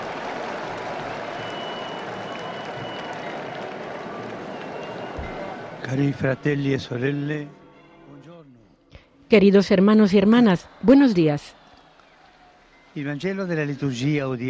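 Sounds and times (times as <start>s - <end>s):
crowd applause in St Peter's Square: 0.0s - 6.6s, 10.0s - 14.4s
speech: 5.8s - 7.6s, 9.3s - 11.6s, 13.0s - 14.4s.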